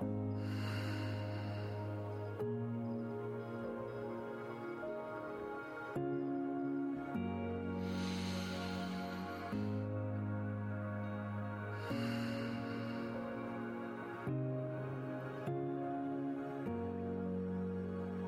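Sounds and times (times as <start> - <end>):
gentle musical drone: 0.0 - 18.2
deep breathing: 0.3 - 2.4, 7.8 - 10.0, 11.8 - 14.2.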